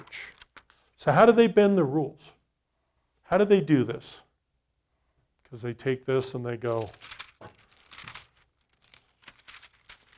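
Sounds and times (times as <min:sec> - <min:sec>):
speech: 0:00.1 - 0:00.4, 0:01.0 - 0:02.4, 0:03.3 - 0:04.2, 0:05.5 - 0:07.6
page being torn out of a book: 0:06.7 - 0:10.1.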